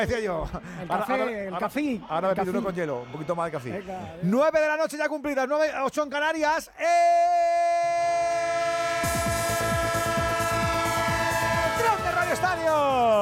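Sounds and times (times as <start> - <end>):
speech: 0.0 - 7.9
train horn sound effect: 8.6 - 12.6.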